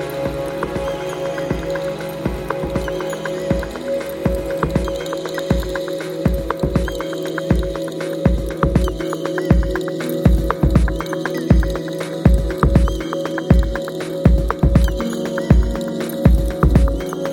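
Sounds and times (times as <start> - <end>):
colours of noise: 0.0 - 17.3.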